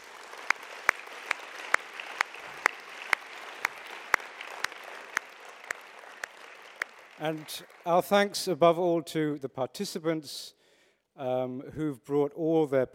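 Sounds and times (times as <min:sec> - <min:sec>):
audience applause: 0:00.0 - 0:08.4
speech: 0:07.2 - 0:10.6, 0:11.2 - 0:12.9.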